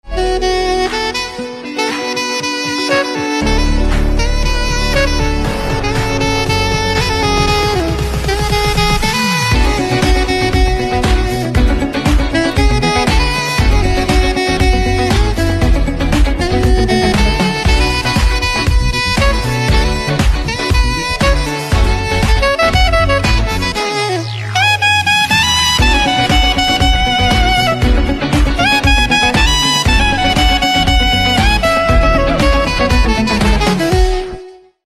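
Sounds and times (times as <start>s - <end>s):
saxophone instrumental ringtone: 0.0s - 34.8s.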